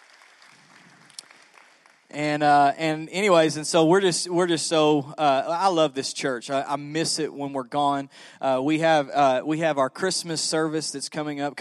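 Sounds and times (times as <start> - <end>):
church audience applause: 0.0 - 2.1
speech: 2.1 - 11.5.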